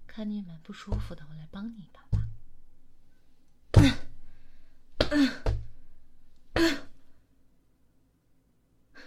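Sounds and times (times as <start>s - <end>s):
speech: 0.2s - 2.1s
person coughing and clearing throat, struggling for breath: 6.6s - 7.0s.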